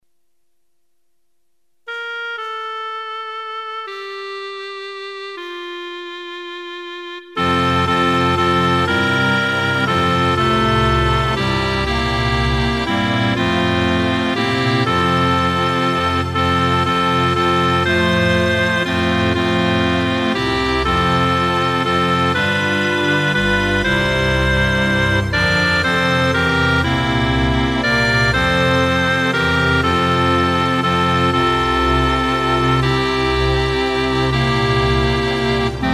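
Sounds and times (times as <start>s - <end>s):
instrumental music: 1.8s - 35.9s.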